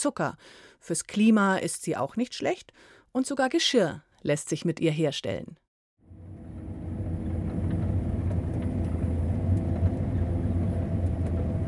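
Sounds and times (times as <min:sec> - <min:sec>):
speech: 0:00.0 - 0:05.6
sugar beet harvester engine running: 0:06.1 - 0:11.6.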